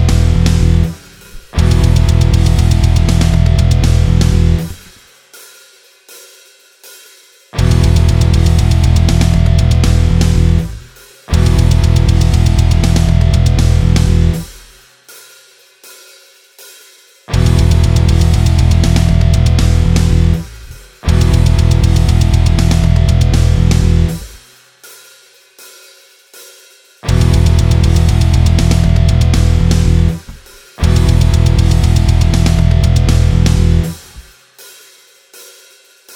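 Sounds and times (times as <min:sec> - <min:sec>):
practice backing track music: 0:00.0 - 0:04.9, 0:07.6 - 0:14.5, 0:17.3 - 0:24.4, 0:27.1 - 0:34.2.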